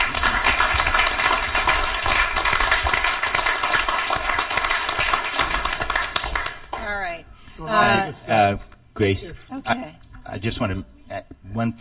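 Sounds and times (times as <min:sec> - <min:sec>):
audience applause: 0:00.0 - 0:06.9
speech: 0:08.5 - 0:11.8.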